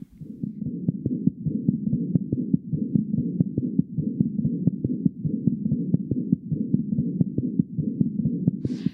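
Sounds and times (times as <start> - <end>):
heartbeat heard through a stethoscope: 0.0 - 8.9.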